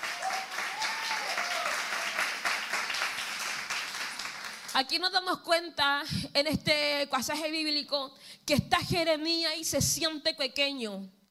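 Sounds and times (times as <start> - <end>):
faint cheers: 0.0 - 2.4
crowd applauding in a large room: 0.0 - 4.8
speech: 4.8 - 11.2.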